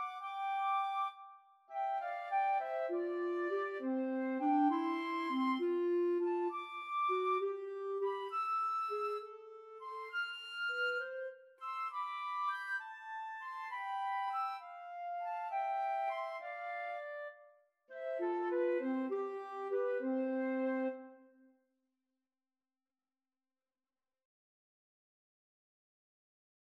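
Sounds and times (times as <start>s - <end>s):
oboe playing a pastorale: 0.0s - 17.4s, 18.0s - 21.2s
flute playing a pastorale: 0.0s - 21.3s
clarinet playing a pastorale: 0.0s - 21.4s.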